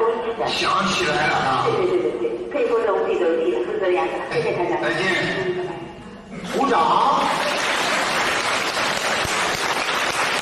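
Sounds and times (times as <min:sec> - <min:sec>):
speech: 0:00.5 - 0:01.9, 0:02.6 - 0:05.6, 0:06.4 - 0:07.6
audience applause: 0:07.2 - 0:10.4.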